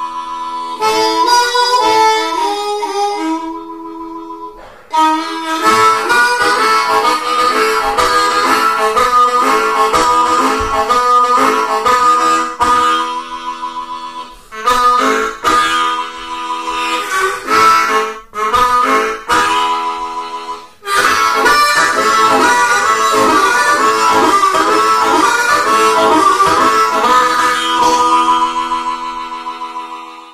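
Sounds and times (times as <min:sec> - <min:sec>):
wailing blues harmonica: 0:00.0 - 0:30.3.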